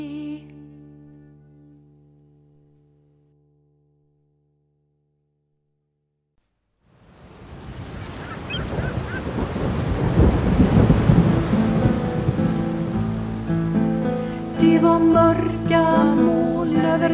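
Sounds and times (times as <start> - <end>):
heavy pouring rain: 7.0 - 17.0
thunder rumbling: 7.3 - 13.6.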